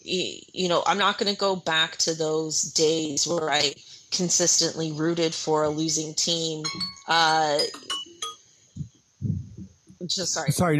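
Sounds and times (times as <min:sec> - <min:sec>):
speech: 0:00.0 - 0:08.0, 0:10.1 - 0:10.7
timer going off: 0:06.6 - 0:08.4.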